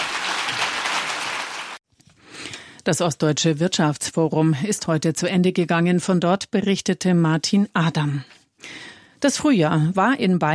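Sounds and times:
applause at a business forum in Bad Saarow: 0.0s - 1.8s
speech: 2.8s - 10.5s.

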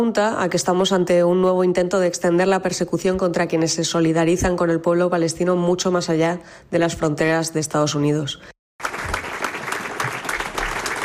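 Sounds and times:
speech: 0.0s - 8.5s
applause after a minute of silence: 8.8s - 11.0s.

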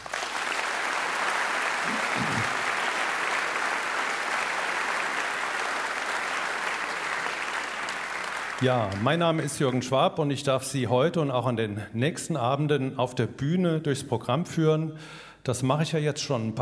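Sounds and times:
sustained audience applause: 0.0s - 9.7s
speech: 8.6s - 16.5s.

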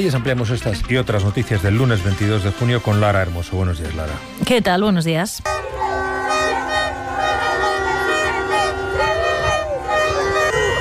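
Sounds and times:
speech: 0.0s - 5.9s
street traffic noise in Bogotá: 5.4s - 10.7s.

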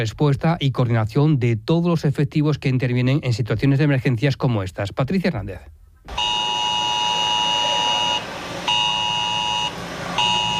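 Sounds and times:
speech: 0.0s - 6.2s
emergency alert tone in Alcuéscar during a forest fire drill: 6.1s - 10.5s.

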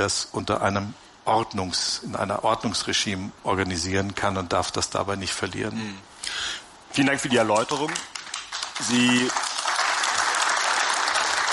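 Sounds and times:
speech: 0.0s - 8.1s, 8.8s - 9.4s
audience applause: 7.6s - 11.5s.

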